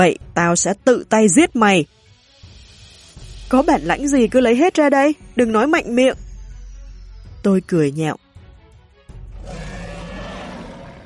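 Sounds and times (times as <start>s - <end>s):
speech: 0.0s - 2.0s, 3.5s - 6.2s, 7.4s - 8.2s
dwarf monster roaring at the sky: 9.4s - 11.0s.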